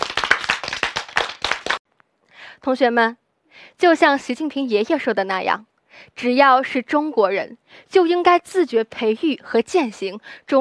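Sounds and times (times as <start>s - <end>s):
schoolchildren in a class clapping for aircraft engineers: 0.0s - 1.8s
speech: 2.6s - 10.5s.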